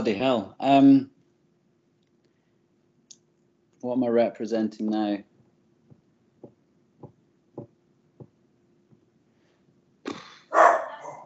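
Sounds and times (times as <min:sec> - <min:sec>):
speech: 0:00.0 - 0:01.1, 0:03.8 - 0:05.3
dog barking: 0:10.5 - 0:11.2.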